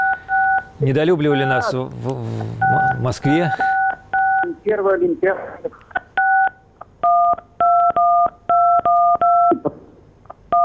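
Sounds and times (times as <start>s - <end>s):
telephone number being dialed with touch-tone beeps: 0.0s - 0.7s, 2.6s - 4.6s, 6.2s - 9.6s
speech: 0.8s - 3.8s, 4.7s - 5.8s.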